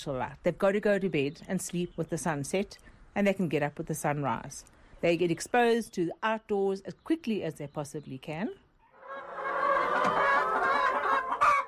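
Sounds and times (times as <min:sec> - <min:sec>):
speech: 0:00.0 - 0:08.6
hens clucking: 0:08.8 - 0:11.6.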